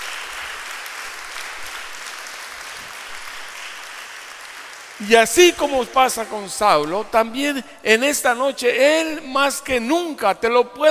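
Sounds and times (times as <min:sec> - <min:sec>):
audience applause: 0:00.0 - 0:06.5
speech: 0:05.0 - 0:10.8.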